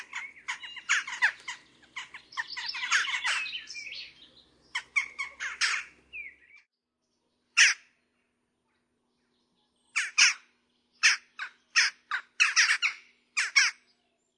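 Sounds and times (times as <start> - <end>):
western jackdaw calls: 0.0 - 6.6, 7.6 - 7.9, 9.9 - 13.9.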